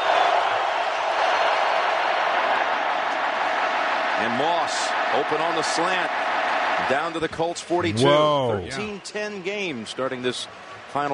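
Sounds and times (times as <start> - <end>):
stadium crowd noise at a football game involving the Colts: 0.0 - 11.1
speech: 4.2 - 11.1.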